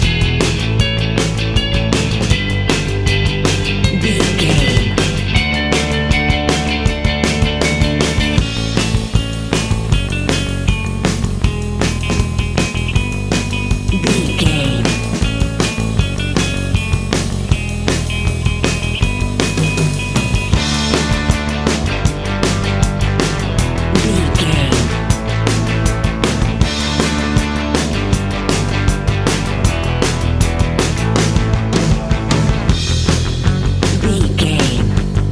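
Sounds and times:
indie pop music bed: 0.0s - 35.3s.

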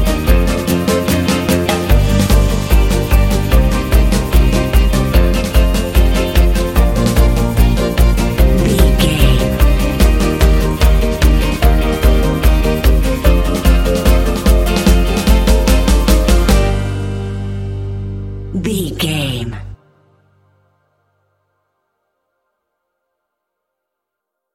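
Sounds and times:
modern European folklore dance music: 0.0s - 17.9s, 18.6s - 19.7s.

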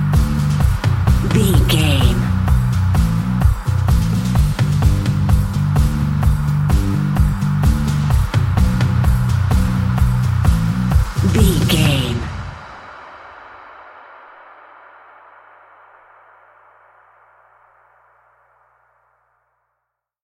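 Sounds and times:
bass guitar: 0.0s - 12.6s
drums playing: 0.2s - 12.4s.

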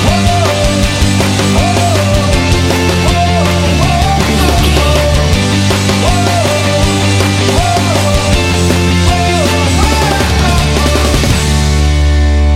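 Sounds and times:
indie rock song with vocals: 0.0s - 12.4s.

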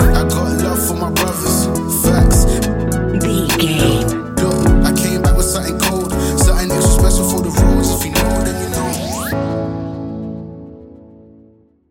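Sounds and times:
relaxed chill music: 0.0s - 11.5s.

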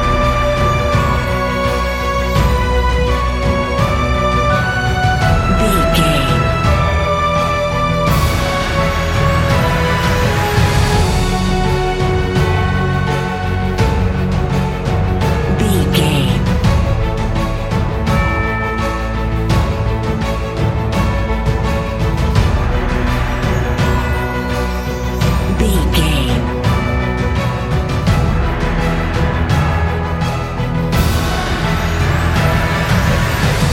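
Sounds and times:
epic emotional music loop: 0.0s - 33.7s.

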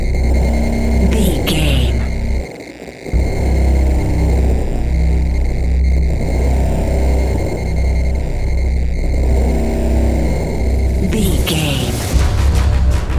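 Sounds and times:
creepy horror suspense music: 0.0s - 13.1s.

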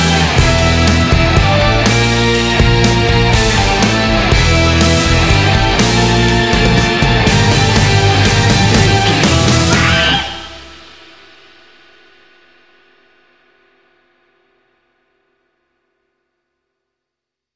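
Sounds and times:
raw rock and roll music: 0.0s - 11.0s.

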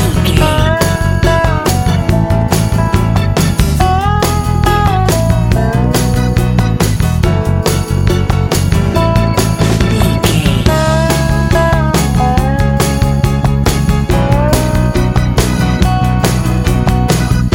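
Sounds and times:
dobro playing hillbilly country music: 0.0s - 17.5s.

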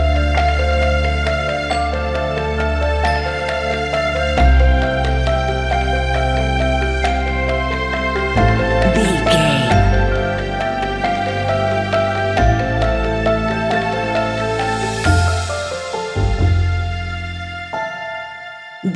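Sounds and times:
sentimental uplifting piano and strings music: 0.0s - 8.9s, 9.8s - 18.8s.

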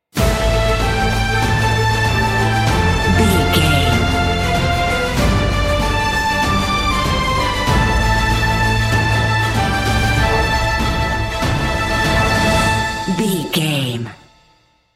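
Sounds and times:
epic cinematic music: 0.2s - 13.3s.

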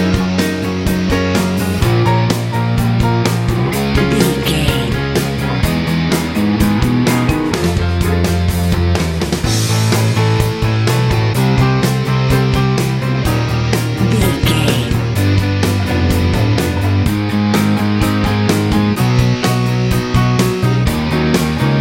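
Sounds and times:
90s rock music: 0.0s - 21.7s.

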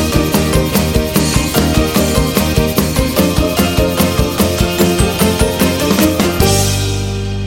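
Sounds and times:
modern European folk dance music: 0.0s - 7.3s.

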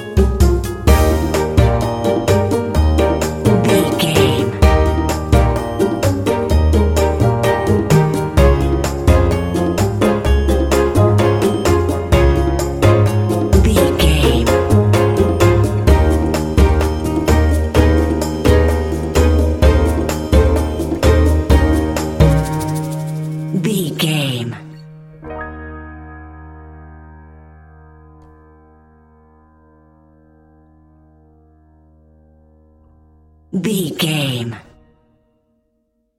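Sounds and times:
curious quirky dramedy underscore music: 0.0s - 26.8s.

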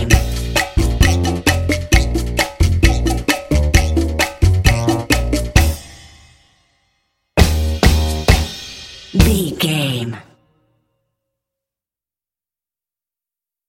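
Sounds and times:
cha cha cha music: 0.0s - 6.2s, 7.4s - 10.2s.

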